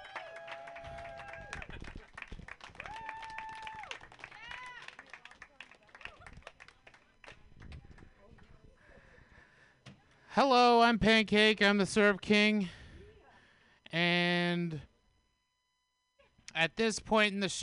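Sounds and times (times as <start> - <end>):
round of applause: 0.0 - 8.5
speech: 10.4 - 12.8, 16.7 - 17.6.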